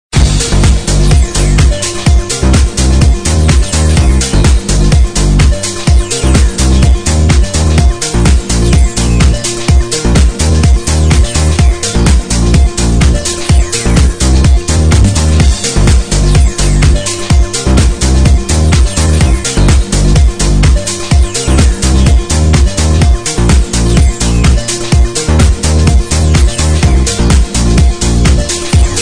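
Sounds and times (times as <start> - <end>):
1980s pop music: 0.2 - 29.0.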